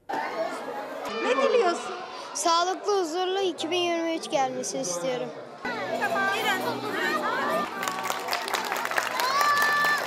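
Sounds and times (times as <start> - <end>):
lively crowd chatter: 0.0 - 10.0
speech: 2.4 - 7.3
applause at a busy indoor gathering: 7.6 - 10.0.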